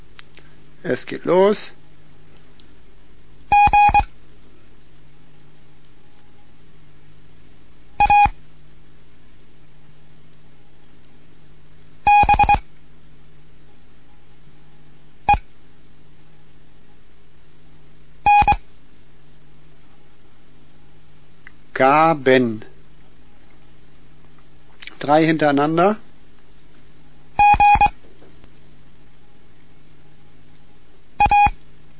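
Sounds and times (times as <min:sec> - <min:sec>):
faint low hum: 0:00.0 - 0:31.9
speech: 0:00.8 - 0:01.8, 0:21.8 - 0:22.7, 0:25.0 - 0:26.0
Morse code beeps spelling words: 0:03.5 - 0:04.1, 0:08.0 - 0:08.4, 0:12.1 - 0:12.6, 0:18.3 - 0:18.6, 0:27.4 - 0:27.9, 0:31.2 - 0:31.6.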